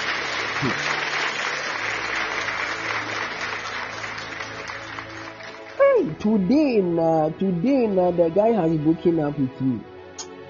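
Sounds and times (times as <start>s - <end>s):
large audience applause: 0.0s - 5.8s
speech: 0.6s - 1.0s, 6.2s - 9.9s.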